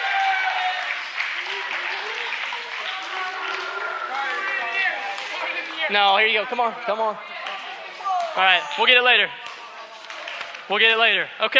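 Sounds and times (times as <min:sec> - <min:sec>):
audience applause: 0:00.0 - 0:06.0
speech: 0:05.9 - 0:07.3, 0:08.4 - 0:09.4, 0:10.7 - 0:11.5.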